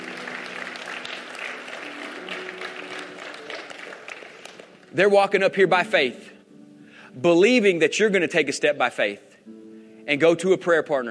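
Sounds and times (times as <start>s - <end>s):
audience applause: 0.0s - 4.9s
speech: 4.9s - 6.3s, 7.2s - 11.0s.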